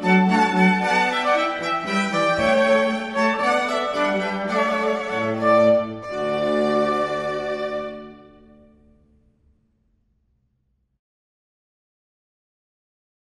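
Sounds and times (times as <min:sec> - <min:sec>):
string quartet playing hornpipe: 0:00.0 - 0:08.6.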